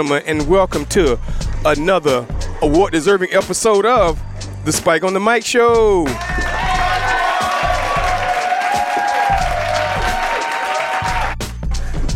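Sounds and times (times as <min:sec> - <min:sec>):
speech: 0:00.0 - 0:06.5
studio audience applause at a comedy talk show opening: 0:06.1 - 0:11.6.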